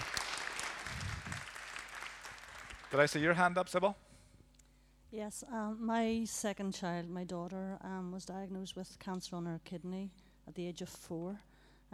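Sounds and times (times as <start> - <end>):
crowd applause: 0.0 - 3.4
speech: 2.9 - 4.0, 5.1 - 11.5.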